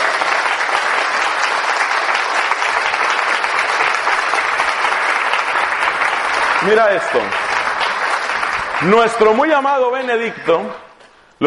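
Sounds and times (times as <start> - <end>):
audience applause: 0.0 - 10.7
speech: 6.6 - 7.5, 8.8 - 10.8.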